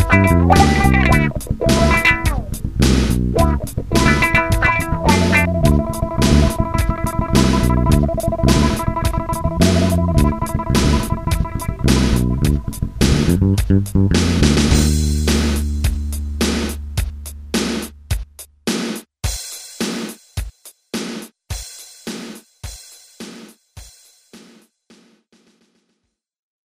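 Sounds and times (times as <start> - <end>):
funk music: 0.0 - 18.2.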